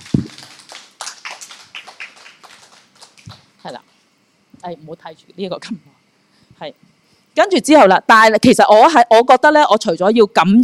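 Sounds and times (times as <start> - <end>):
audience applause: 0.0 - 3.5
speech: 3.6 - 3.9, 4.6 - 6.0, 6.6 - 6.8, 7.4 - 10.6.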